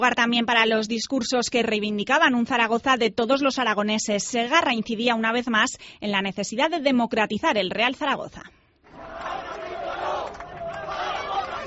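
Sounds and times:
speech: 0.0 - 8.6
crowd chanting a protest slogan: 8.9 - 11.6.

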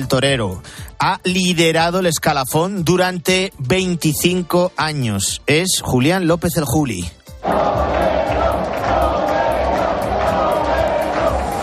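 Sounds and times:
speech: 0.0 - 7.9
bullfight fans cheering a matador at Las Ventas: 7.4 - 11.6.

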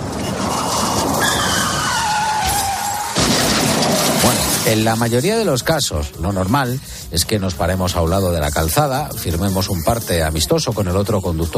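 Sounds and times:
car crashing into another car: 0.0 - 5.2
car tires screeching in a skid: 0.0 - 5.7
speech: 4.7 - 11.5.

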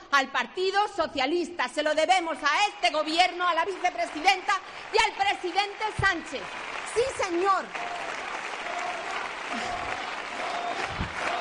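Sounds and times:
speech: 0.1 - 8.0
large crowd applauding: 2.9 - 11.4
voices shouting together: 7.8 - 11.4.

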